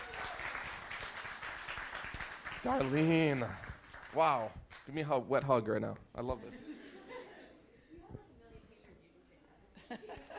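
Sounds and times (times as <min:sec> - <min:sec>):
church audience applause: 0:00.0 - 0:04.5
speech: 0:02.6 - 0:06.8.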